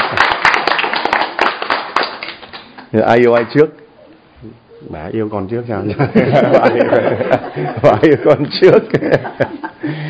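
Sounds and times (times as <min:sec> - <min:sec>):
applause for a couple's 21st wedding anniversary: 0:00.0 - 0:03.6
speech: 0:02.9 - 0:03.8, 0:04.4 - 0:10.0
laughter: 0:05.9 - 0:09.8.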